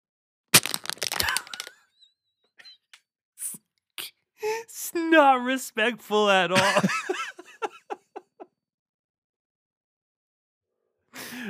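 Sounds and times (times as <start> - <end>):
plastic crinkling: 0.6 - 1.8
two plastic water bottles knocked together: 0.6 - 1.8
speech: 4.9 - 7.2
laughter: 6.5 - 8.5.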